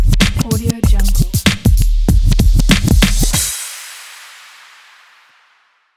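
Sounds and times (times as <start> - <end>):
record scratch ident: 0.1 - 3.5.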